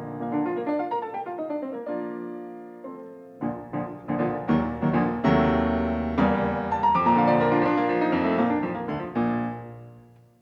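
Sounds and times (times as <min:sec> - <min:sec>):
piano variations: 0:00.0 - 0:10.3.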